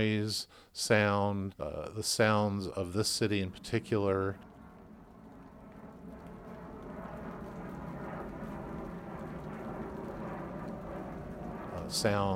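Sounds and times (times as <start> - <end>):
speech: 0.0 - 4.5, 11.9 - 12.3
airplane passing overhead: 2.6 - 12.3.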